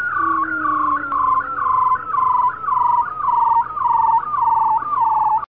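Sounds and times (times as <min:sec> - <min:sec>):
seal: 0:00.2 - 0:05.4.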